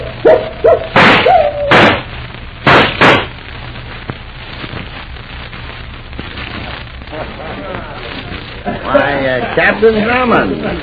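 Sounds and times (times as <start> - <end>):
gunshots in a radio drama: 0.8 - 3.4
speech: 9.2 - 10.8.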